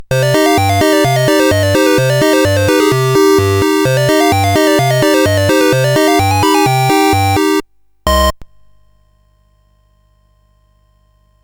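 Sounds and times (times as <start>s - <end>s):
SID chiptune music on CSG8580R5 chip: 0.0s - 8.4s.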